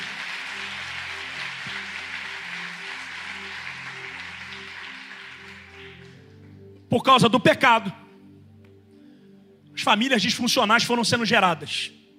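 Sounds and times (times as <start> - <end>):
audience applause: 0.0 - 6.4
speech: 6.9 - 8.0, 9.8 - 12.0.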